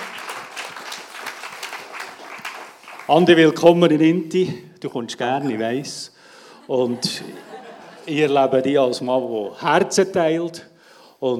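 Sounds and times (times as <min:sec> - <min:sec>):
audience applause: 0:00.0 - 0:03.8
speech: 0:03.1 - 0:11.3
laughter: 0:05.3 - 0:08.6.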